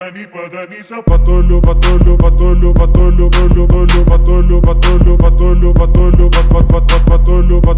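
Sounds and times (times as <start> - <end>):
Arabic trap music for cars: 0.0 - 7.7.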